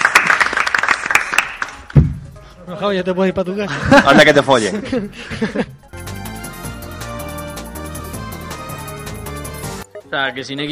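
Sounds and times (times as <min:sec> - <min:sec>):
applause: 0:00.0 - 0:02.0
speech: 0:02.7 - 0:05.8, 0:10.1 - 0:10.7
laughter: 0:03.6 - 0:05.8.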